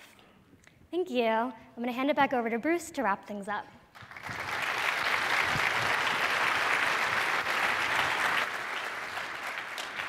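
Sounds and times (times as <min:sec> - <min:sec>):
speech: 0:00.9 - 0:04.4
audience applause: 0:04.0 - 0:10.0.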